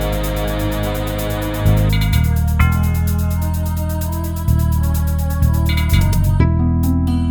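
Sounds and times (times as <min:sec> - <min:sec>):
MIDI music in G minor on a synthesizer module: 0:00.0 - 0:07.2.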